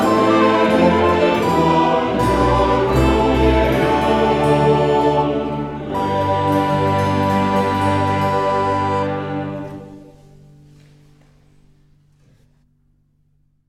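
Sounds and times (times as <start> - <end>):
choir singing: 0.0 - 10.4.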